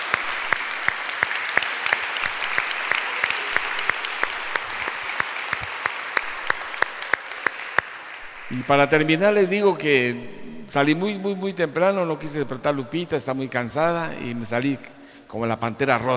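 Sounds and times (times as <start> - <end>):
audience applause: 0.0 - 9.4
speech: 8.5 - 16.1.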